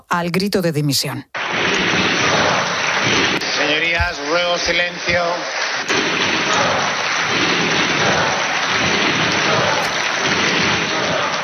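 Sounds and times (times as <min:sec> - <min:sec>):
speech: 0:00.1 - 0:02.0, 0:03.7 - 0:08.9
applause of Partido Socialista senators in the Senate chamber: 0:01.4 - 0:11.4.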